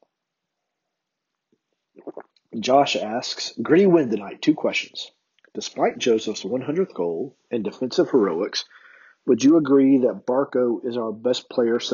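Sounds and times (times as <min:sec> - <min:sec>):
sipping coffee: 0:02.0 - 0:02.6
speech: 0:02.6 - 0:11.9.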